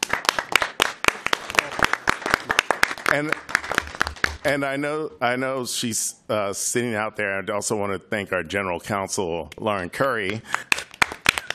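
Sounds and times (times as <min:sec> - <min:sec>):
round of applause: 0:00.0 - 0:04.4, 0:10.3 - 0:11.5
speech: 0:03.1 - 0:03.5, 0:04.4 - 0:10.7.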